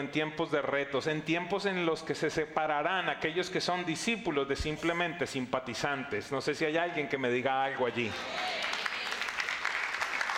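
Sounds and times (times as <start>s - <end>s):
speech: 0.0s - 8.8s
audience applause: 8.0s - 10.3s.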